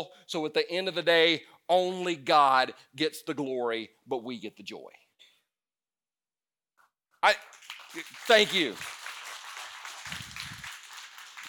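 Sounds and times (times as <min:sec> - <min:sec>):
speech: 0:00.0 - 0:05.0, 0:07.2 - 0:09.0
audience clapping: 0:07.2 - 0:11.4.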